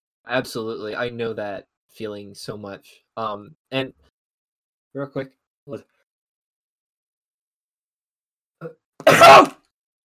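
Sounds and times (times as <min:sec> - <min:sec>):
speech: 0:00.3 - 0:04.1, 0:05.0 - 0:05.9, 0:08.6 - 0:09.6
hard explosive sneeze: 0:09.0 - 0:09.6.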